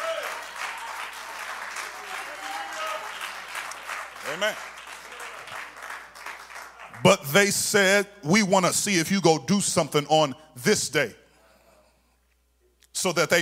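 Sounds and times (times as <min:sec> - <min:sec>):
audience clapping hands: 0:00.0 - 0:07.2
speech: 0:04.3 - 0:04.8, 0:07.0 - 0:11.2, 0:13.0 - 0:13.4.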